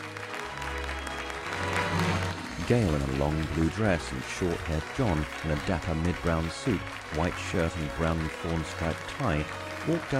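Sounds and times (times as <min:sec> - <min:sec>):
diners in a posh restaurant applauding: 0:00.0 - 0:10.1
speech: 0:02.7 - 0:10.1.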